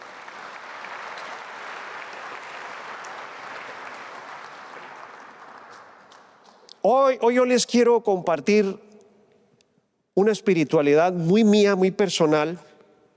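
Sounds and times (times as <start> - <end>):
audience applauding: 0.0 - 6.6
speech: 6.8 - 8.8, 10.2 - 12.7.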